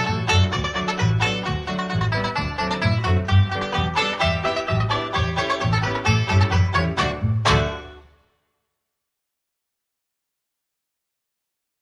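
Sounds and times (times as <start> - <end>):
banjo, extended: 0.0 - 8.2.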